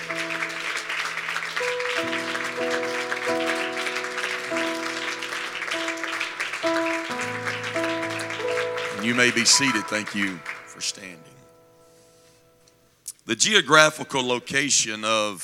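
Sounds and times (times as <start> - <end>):
large crowd clapping in praise: 0.0 - 11.4
held organ or keyboard chords: 0.0 - 13.0
speech: 9.1 - 11.4, 13.3 - 15.4.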